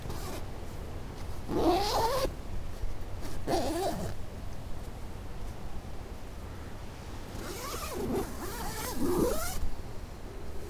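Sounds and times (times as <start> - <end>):
zipper at Durdle Door: 0.1 - 0.4, 1.5 - 2.3, 3.2 - 4.2, 7.4 - 9.6.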